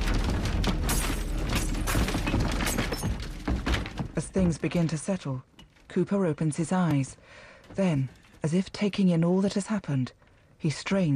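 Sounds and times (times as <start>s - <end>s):
gas explosion destroying a house: 0.0s - 4.3s
heavy thuds: 0.0s - 5.0s
debris crashing, shattering and breaking: 0.0s - 5.8s
speech: 4.4s - 11.1s.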